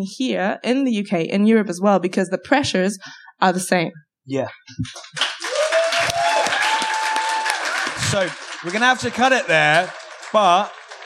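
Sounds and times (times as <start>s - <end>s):
speech: 0.0s - 5.3s, 8.1s - 10.8s
audience applause: 4.8s - 11.0s.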